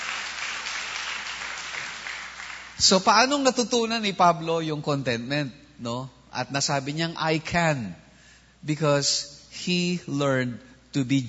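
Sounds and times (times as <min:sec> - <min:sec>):
church congregation applauding during a sermon: 0:00.0 - 0:03.0
speech: 0:02.8 - 0:08.0, 0:08.6 - 0:11.2.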